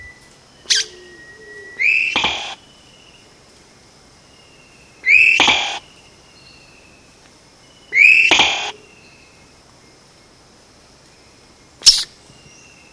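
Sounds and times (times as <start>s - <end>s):
Vogelkop bowerbird loud short sharp note: 1.6s - 2.6s, 5.0s - 5.9s, 8.0s - 8.8s.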